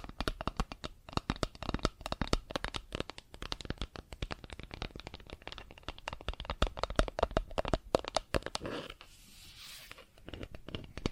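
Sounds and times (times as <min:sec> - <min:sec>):
plastic objects tapped and scratched: 0:00.0 - 0:09.1, 0:09.9 - 0:11.1.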